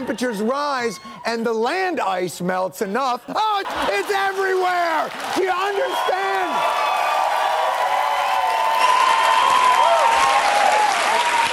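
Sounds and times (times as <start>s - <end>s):
laughter: 0.0s - 6.4s
speech: 0.0s - 6.9s
applause for a performer: 3.7s - 11.5s.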